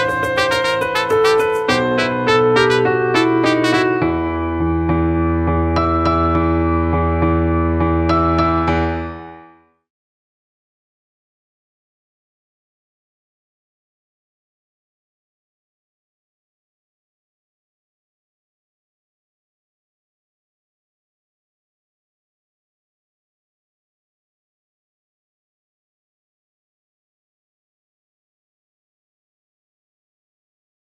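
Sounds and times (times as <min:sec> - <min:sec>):
karaoke piano: 0:00.0 - 0:09.5.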